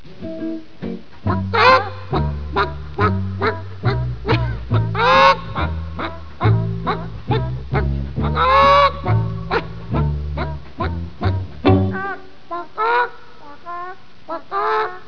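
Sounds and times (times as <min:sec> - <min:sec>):
chicken: 0:01.3 - 0:15.0.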